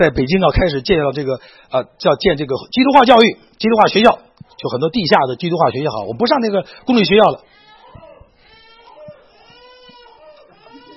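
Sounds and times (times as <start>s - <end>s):
speech: 0.0s - 8.0s
baby crying and vocalizing: 7.4s - 10.9s.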